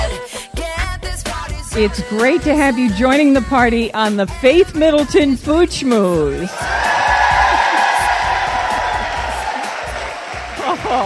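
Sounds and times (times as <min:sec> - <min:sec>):
speech: 0:01.8 - 0:06.8
laughter: 0:06.5 - 0:11.0
live audience cheering for a Food Network star: 0:06.5 - 0:11.0.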